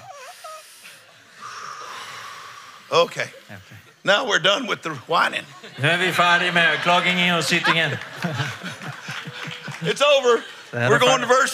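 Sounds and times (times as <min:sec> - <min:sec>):
audience inhaling deeply together: 0:00.3 - 0:03.7
speech: 0:02.9 - 0:08.5, 0:09.8 - 0:11.5
laughter: 0:03.1 - 0:11.5.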